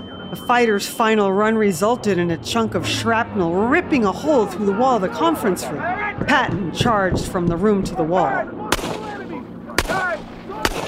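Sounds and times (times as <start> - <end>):
speech: 0.3 - 9.0
Patton firing his Colt at departing planes: 8.7 - 10.8.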